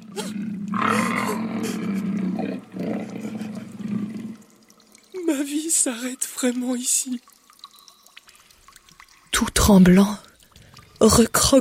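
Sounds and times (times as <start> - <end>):
lion roaring: 0.0 - 4.4
speech: 5.5 - 7.4, 9.7 - 10.3, 11.0 - 11.5.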